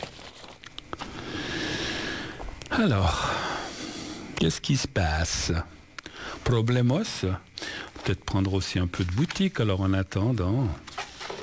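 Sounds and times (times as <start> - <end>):
small sheets of paper gathered up and put away: 0.0 - 1.2, 7.8 - 11.4
speech: 2.7 - 3.4, 4.4 - 5.8, 6.4 - 10.8.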